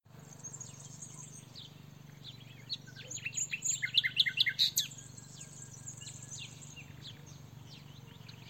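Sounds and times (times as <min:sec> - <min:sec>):
common nightingale Luscinia megarhynchos singing: 0:00.1 - 0:08.4.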